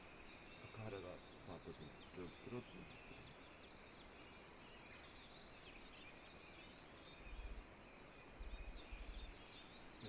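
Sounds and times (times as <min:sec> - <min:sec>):
leaf warbler (mushikui) singing in thin high chirps: 0:00.0 - 0:10.0
speech: 0:00.6 - 0:03.4.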